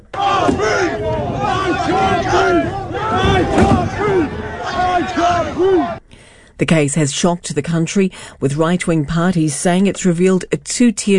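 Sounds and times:
protest crowd chanting: 0:00.0 - 0:06.0
speech: 0:06.6 - 0:11.1.

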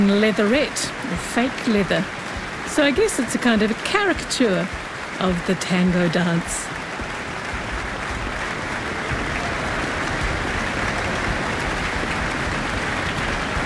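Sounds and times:
speech: 0:00.0 - 0:06.8
audience applause after an encore: 0:00.0 - 0:13.6.

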